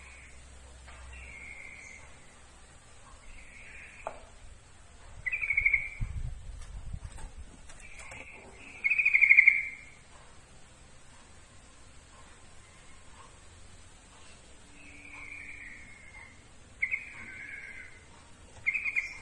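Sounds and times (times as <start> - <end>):
yellow-vented bulbul giving bright notes: 0.0 - 4.4, 5.1 - 6.3, 7.8 - 10.1, 14.7 - 19.2.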